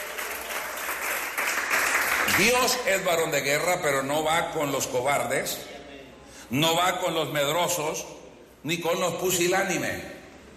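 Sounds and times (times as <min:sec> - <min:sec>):
church congregation applauding during a service: 0:00.0 - 0:03.2
speech: 0:02.3 - 0:05.7, 0:06.5 - 0:10.1.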